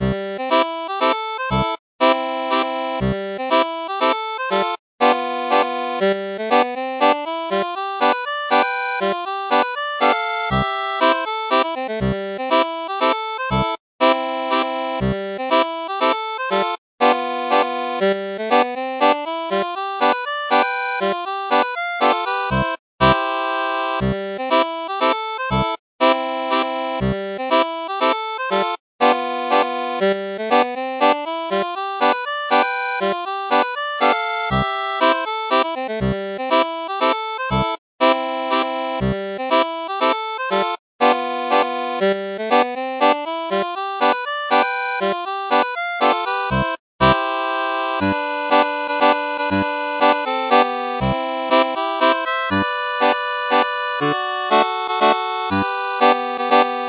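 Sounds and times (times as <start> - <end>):
mazurka on a Styrian harmonica: 0.0 - 56.8.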